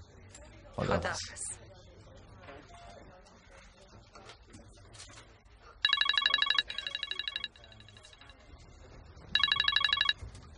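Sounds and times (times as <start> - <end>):
speech: 0.8 - 1.6
telephone ringing with a trilling tone: 5.8 - 8.3, 9.3 - 10.3.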